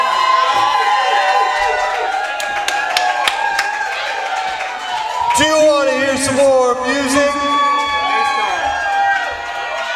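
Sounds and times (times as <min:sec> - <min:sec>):
large audience cheering: 0:00.0 - 0:09.9
shouts: 0:00.0 - 0:09.9
scattered claps: 0:01.9 - 0:05.4.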